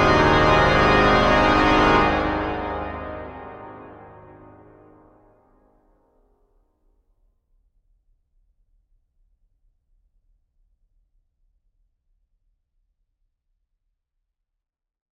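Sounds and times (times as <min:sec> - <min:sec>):
organ piece imitating cathedral bells: 0:00.0 - 0:05.1.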